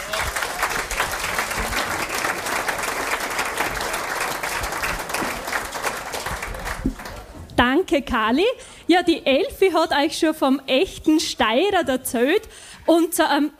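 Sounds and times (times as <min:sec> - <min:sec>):
audience applause: 0:00.0 - 0:07.4
speech: 0:07.6 - 0:13.5.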